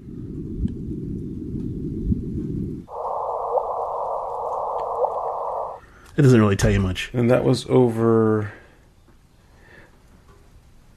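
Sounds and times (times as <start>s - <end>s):
LIGO gravitational wave signal converted into audio: 2.9s - 5.8s
speech: 6.2s - 8.6s.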